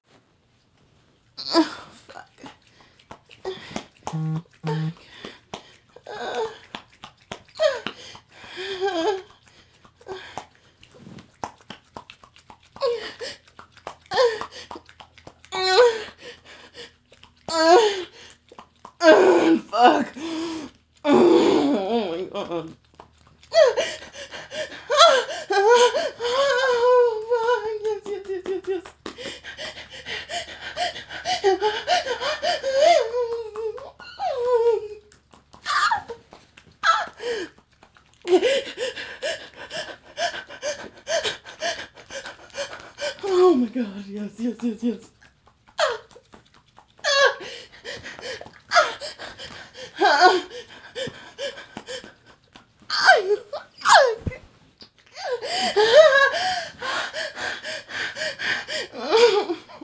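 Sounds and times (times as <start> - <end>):
wet sounds: 0.1 - 59.8
person having multiple orgasms: 1.4 - 2.6, 3.4 - 6.8, 15.5 - 22.8, 23.5 - 45.2, 46.9 - 59.8.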